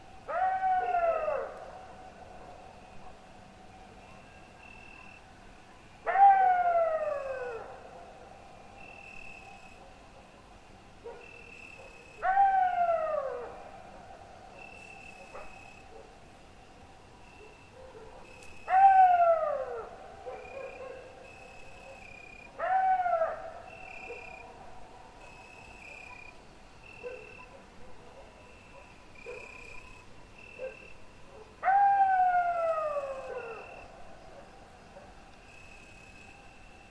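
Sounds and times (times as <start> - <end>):
wolves and dogs howling: 0.2 - 3.2, 6.0 - 8.2, 11.8 - 16.2, 17.8 - 21.1, 21.8 - 25.0, 30.6 - 35.2.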